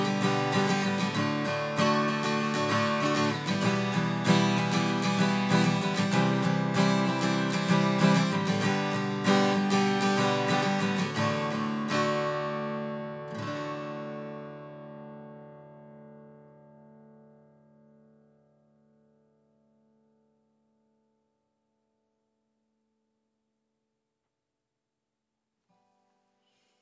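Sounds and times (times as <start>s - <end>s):
filtered strumming: 0.0s - 18.3s.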